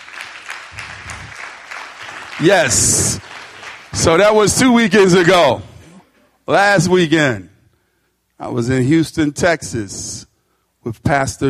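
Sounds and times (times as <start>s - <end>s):
audience clapping hands: 0.0s - 5.3s
speech: 2.4s - 3.3s, 4.0s - 5.7s, 6.5s - 7.5s, 8.4s - 11.4s.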